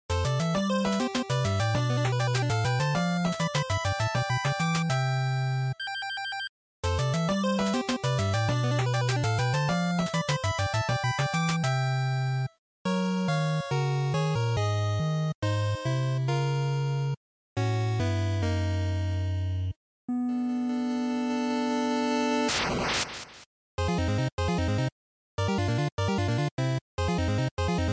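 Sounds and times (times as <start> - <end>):
NES shooter chiptune game music: 0.1 - 22.5, 23.8 - 27.9.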